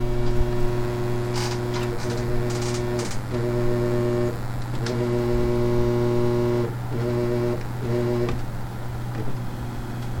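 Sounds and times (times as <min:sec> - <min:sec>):
noise: 0:00.0 - 0:10.1.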